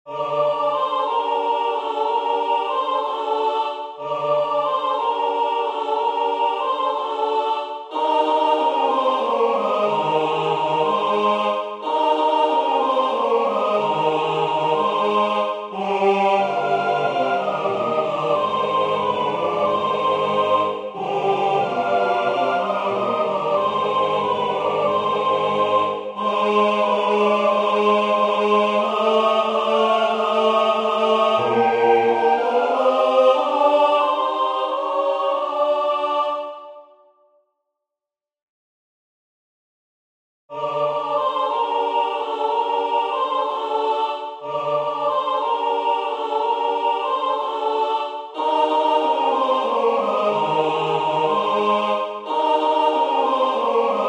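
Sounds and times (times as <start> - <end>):
soprano singing a folk song: 0.1 - 36.8, 40.5 - 54.0.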